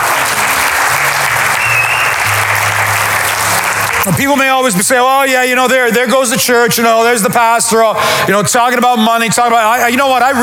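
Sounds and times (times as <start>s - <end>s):
church congregation applauding for online viewers: 0.0s - 5.0s
speech: 4.0s - 10.4s.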